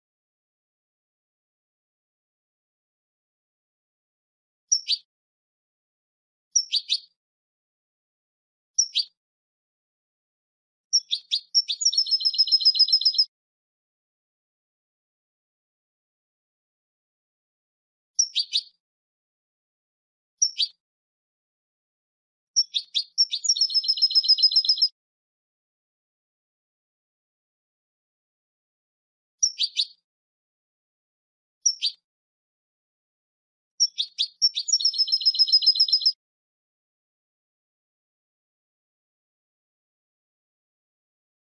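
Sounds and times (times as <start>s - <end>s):
European goldfinch calls and trill: 4.7s - 5.1s, 6.6s - 7.2s, 8.8s - 9.2s, 10.9s - 13.3s, 18.2s - 18.8s, 20.4s - 20.8s, 22.6s - 24.9s, 29.4s - 30.0s, 31.6s - 32.0s, 33.8s - 36.2s.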